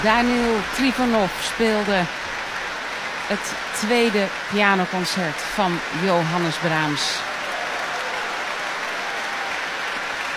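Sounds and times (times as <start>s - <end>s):
speech: 0.0s - 2.2s, 3.3s - 7.3s
enthusiastic applause in the grote zaal of De Doelen in Rotterdam: 0.0s - 10.3s.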